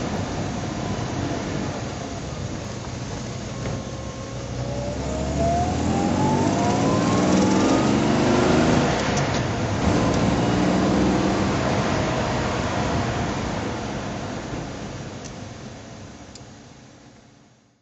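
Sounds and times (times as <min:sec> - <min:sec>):
Jaguar XK150 FHC engine driving: 0:00.0 - 0:16.2.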